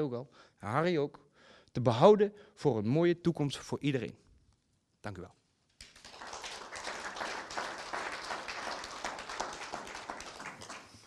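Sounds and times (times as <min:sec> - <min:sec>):
speech: 0:00.0 - 0:04.2, 0:05.0 - 0:05.4
crowd applauding: 0:05.8 - 0:11.0.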